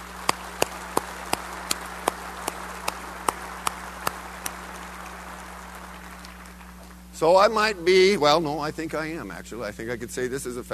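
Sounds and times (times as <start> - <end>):
round of applause: 0.0 - 7.2
speech: 7.2 - 10.7.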